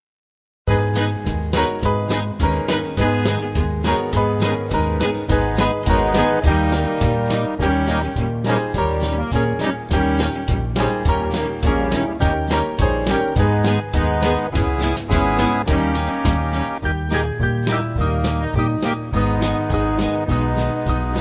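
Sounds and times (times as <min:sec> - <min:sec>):
band playing: 0:00.7 - 0:21.1.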